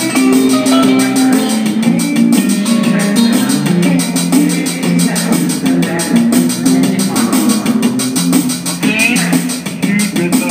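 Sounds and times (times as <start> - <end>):
live subway busking music at 14th Street: 0.0 - 10.4.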